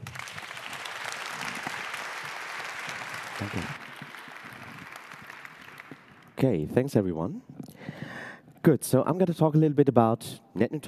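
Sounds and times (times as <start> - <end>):
audience applause: 0.0 - 6.4
speech: 3.4 - 3.8, 6.4 - 7.5, 8.6 - 10.8.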